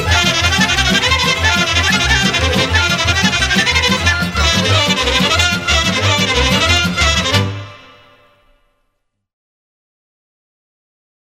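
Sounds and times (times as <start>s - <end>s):
orchestra playing: 0.0s - 8.8s.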